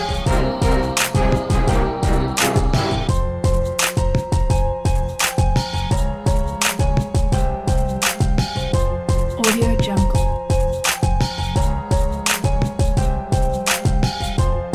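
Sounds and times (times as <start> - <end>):
lyrical piano hip hop music: 0.0 - 14.7.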